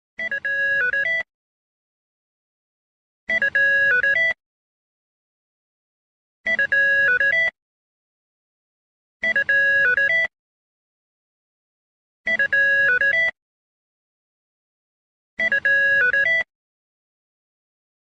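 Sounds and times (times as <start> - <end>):
ringtone: 0.2 - 1.3, 3.3 - 4.4, 6.5 - 7.6, 9.2 - 10.4, 12.3 - 13.4, 15.4 - 16.5.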